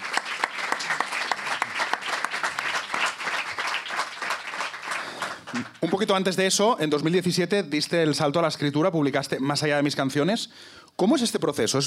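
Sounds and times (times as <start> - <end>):
audience applause: 0.0 - 6.1
speech: 5.5 - 11.8.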